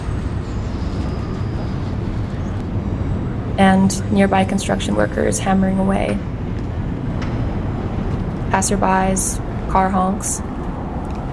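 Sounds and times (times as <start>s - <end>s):
faint metallic squeal of train: 0.0s - 5.3s
train rumbling past: 0.0s - 11.3s
speech: 3.6s - 6.3s, 8.5s - 10.5s.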